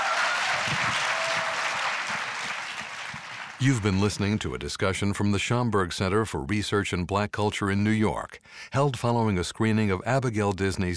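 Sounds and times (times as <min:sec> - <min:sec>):
audience applause: 0:00.0 - 0:04.4
speech: 0:03.6 - 0:10.9.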